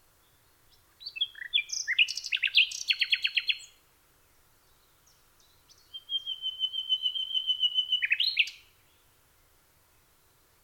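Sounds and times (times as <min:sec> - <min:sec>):
common nightingale song: 0:00.2 - 0:03.8, 0:04.7 - 0:09.1.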